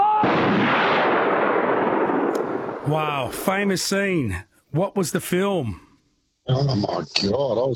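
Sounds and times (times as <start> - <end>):
firing squad rifle volley in a film scene: 0.0 - 3.8
speech: 2.9 - 5.8, 6.5 - 7.7.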